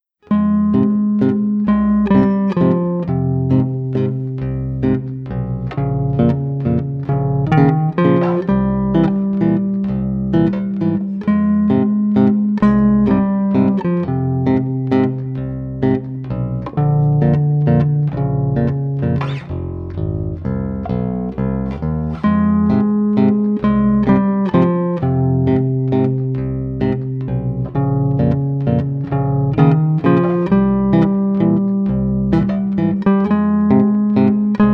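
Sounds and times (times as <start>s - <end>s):
two bass guitars playing a waltz: 0.2s - 34.7s.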